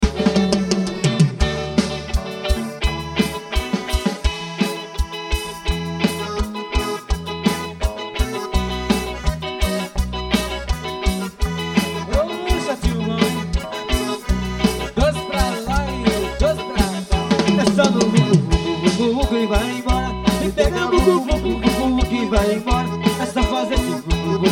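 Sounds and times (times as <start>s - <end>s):
xote music: 0.0s - 24.5s.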